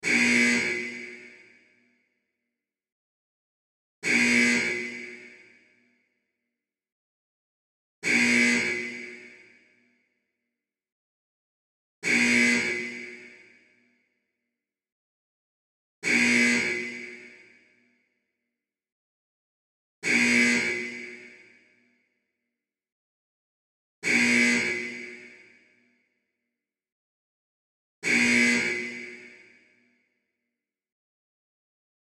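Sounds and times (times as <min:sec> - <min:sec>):
alarm: 0:00.0 - 0:02.6, 0:04.0 - 0:06.6, 0:08.0 - 0:10.6, 0:12.0 - 0:14.6, 0:16.0 - 0:18.6, 0:20.0 - 0:22.6, 0:24.0 - 0:26.6, 0:28.0 - 0:30.7.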